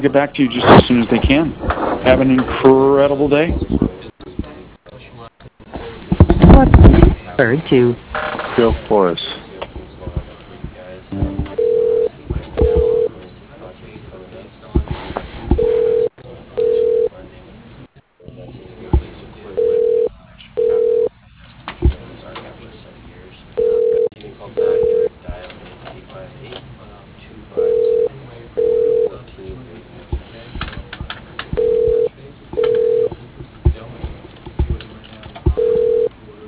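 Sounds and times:
speech: 0:00.0 - 0:04.0, 0:06.6 - 0:09.3
murmur: 0:00.0 - 0:36.4
telephone ringing tone: 0:11.2 - 0:13.1, 0:15.6 - 0:17.1, 0:19.6 - 0:21.1, 0:23.6 - 0:25.1, 0:27.6 - 0:29.2, 0:31.6 - 0:33.1, 0:35.6 - 0:36.1.

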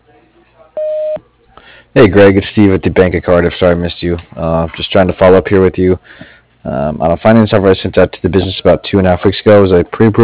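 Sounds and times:
faint low hum: 0:00.0 - 0:10.2
voicemail beep tone: 0:00.8 - 0:01.2
speech: 0:02.0 - 0:10.2.

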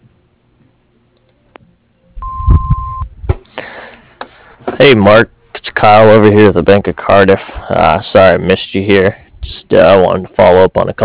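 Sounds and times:
answering machine beep: 0:02.2 - 0:03.0
speech: 0:04.8 - 0:11.0.

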